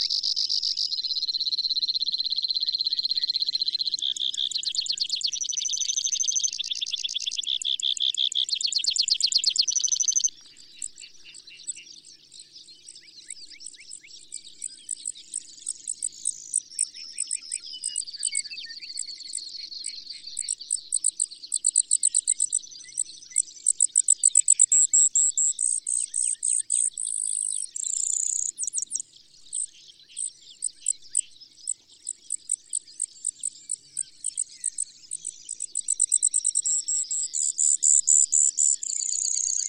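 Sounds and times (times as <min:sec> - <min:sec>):
Brewer's sparrow: 0:00.0 - 0:39.6.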